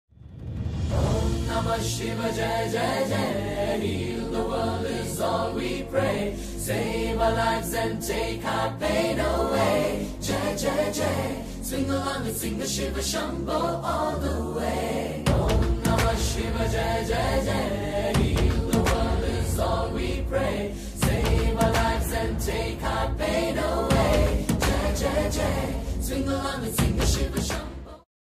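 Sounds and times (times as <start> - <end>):
devotional Hindi song: 0.7 - 28.0.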